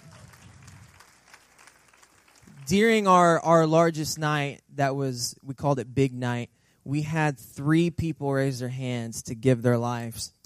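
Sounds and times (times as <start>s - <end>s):
audience clapping: 0.0s - 3.0s
speech: 2.7s - 10.4s.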